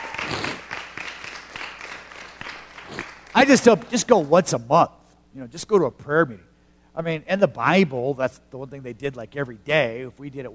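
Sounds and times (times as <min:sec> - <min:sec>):
crowd clapping: 0:00.0 - 0:04.4
speech: 0:03.4 - 0:10.5.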